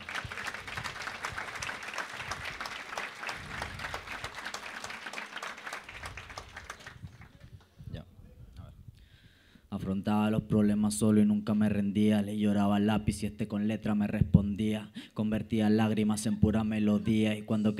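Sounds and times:
crowd applause: 0.0 - 7.6
speech: 9.8 - 17.7.

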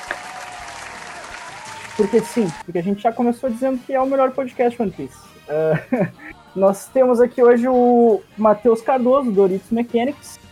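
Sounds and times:
applause: 0.0 - 2.6
speech: 2.0 - 10.4
laughter: 5.5 - 6.4.

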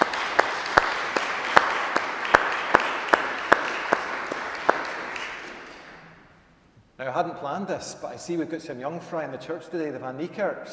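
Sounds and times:
audience applauding: 0.0 - 6.2
speech: 7.2 - 10.7.

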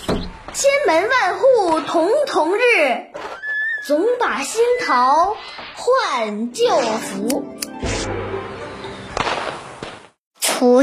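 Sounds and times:
speech: 0.6 - 3.2, 3.9 - 7.6, 10.6 - 10.8
firecrackers popping: 9.2 - 10.2.

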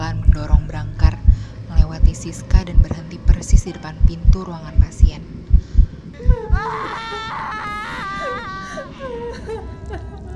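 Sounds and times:
low thumps: 0.0 - 6.7
speech: 2.2 - 5.4
family wailing and sobbing in grief: 6.2 - 10.3.

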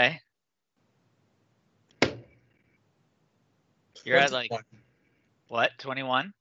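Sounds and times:
speech: 0.0 - 0.2, 4.0 - 4.8, 5.5 - 6.3
crossbow bolt lodging into a tree branch: 2.0 - 2.3.

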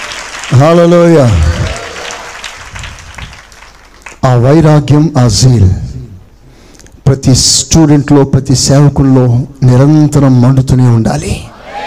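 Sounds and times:
congregation clapping to glorify God in a church service: 0.0 - 4.2
speech: 0.5 - 1.6, 4.3 - 5.9, 7.1 - 11.5.

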